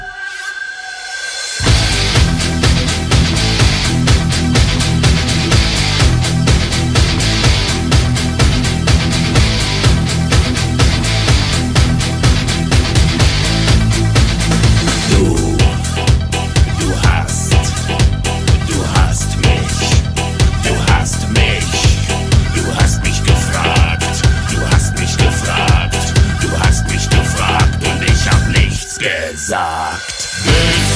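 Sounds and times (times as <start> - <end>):
music: 0.0 - 30.9.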